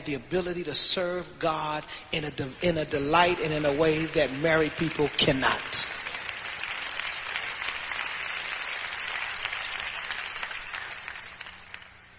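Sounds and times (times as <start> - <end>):
speech: 0.0 - 6.0
audience applause: 3.2 - 12.1.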